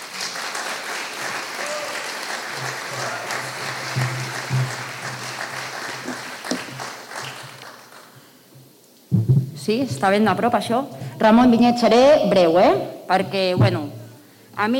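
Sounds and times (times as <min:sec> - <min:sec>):
audience applause: 0:00.0 - 0:08.2
speech: 0:09.7 - 0:14.0, 0:14.6 - 0:14.7.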